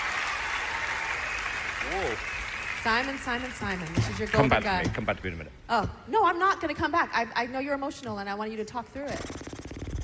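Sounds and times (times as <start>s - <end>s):
standing ovation audience clapping: 0.0s - 5.4s
speech: 1.9s - 9.5s.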